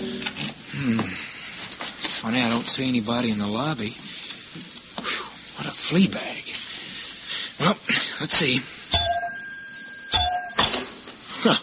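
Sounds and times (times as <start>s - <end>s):
speech: 0.8s - 1.3s, 2.2s - 4.0s, 5.9s - 6.5s, 7.6s - 8.8s, 11.4s - 11.6s
desk bell ringing: 8.9s - 11.3s.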